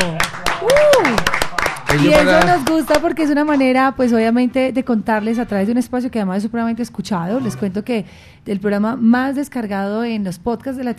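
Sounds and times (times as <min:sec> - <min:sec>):
scattered sharp claps: 0:00.0 - 0:03.6
person whooping: 0:00.6 - 0:01.3
speech: 0:01.9 - 0:10.9.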